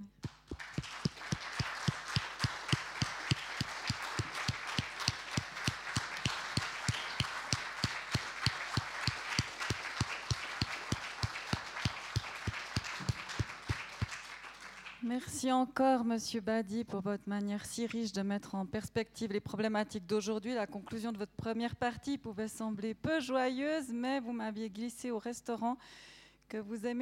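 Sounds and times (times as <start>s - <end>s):
audience applause: 0.3s - 15.0s
speech: 15.2s - 27.0s.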